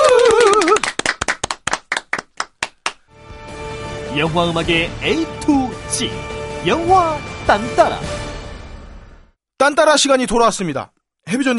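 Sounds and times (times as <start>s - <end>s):
clapping: 0.0s - 3.0s
speech: 4.2s - 8.2s, 9.6s - 11.5s.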